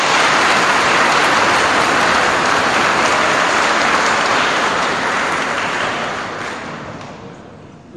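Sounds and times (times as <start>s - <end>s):
applause in a church for first communion children: 0.0s - 7.4s.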